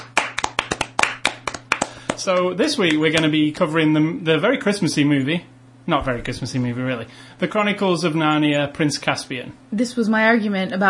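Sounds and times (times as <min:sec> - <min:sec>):
round of applause, hands clapping: 0:00.0 - 0:03.5
speech: 0:02.2 - 0:10.8.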